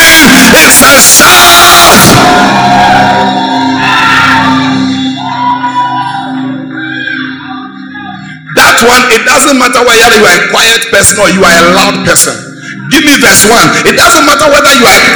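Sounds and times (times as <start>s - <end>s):
audience shouting in triumph: 0.0s - 7.2s
speech: 0.9s - 1.5s, 8.8s - 15.1s.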